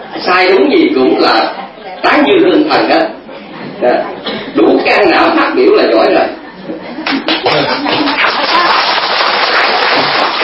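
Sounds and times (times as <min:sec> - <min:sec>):
speech: 0:00.2 - 0:03.2, 0:03.8 - 0:06.8, 0:07.4 - 0:08.1
crowd applauding: 0:07.0 - 0:10.4.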